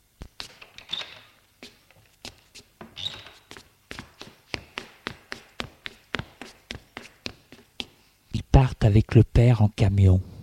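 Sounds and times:
footsteps descending stairs: 0:00.2 - 0:08.0
speech: 0:08.9 - 0:10.3.

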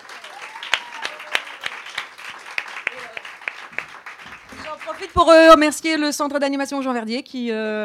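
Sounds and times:
audience applause: 0:00.0 - 0:05.5
speech: 0:04.8 - 0:07.8.

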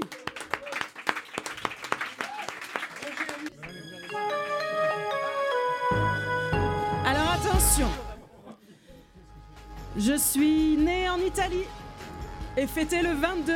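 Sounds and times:
audience applause: 0:00.0 - 0:04.3
bright musical jingle with sustained tones: 0:03.7 - 0:08.1
laughter: 0:08.1 - 0:09.3
speech: 0:10.0 - 0:11.8, 0:12.6 - 0:13.5.

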